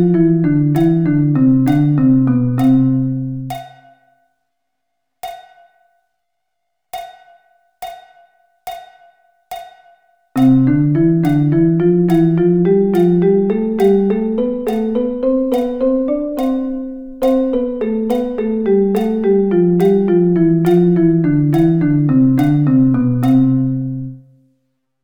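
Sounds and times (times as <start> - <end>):
drum double sticking: 0.0 - 3.9, 10.4 - 24.0.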